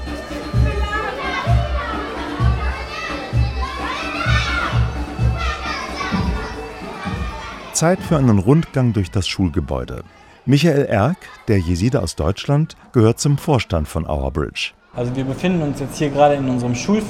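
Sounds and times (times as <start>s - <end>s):
schoolgirls shouting and cheering during break: 0.6s - 7.7s
speech: 7.8s - 17.0s.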